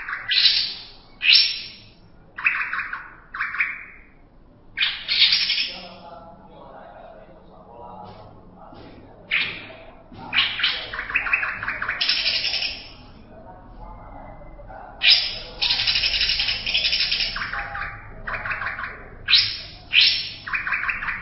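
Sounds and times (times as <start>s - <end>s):
greater green leafbird song: 0.0s - 6.1s, 10.3s - 13.2s, 15.0s - 21.2s.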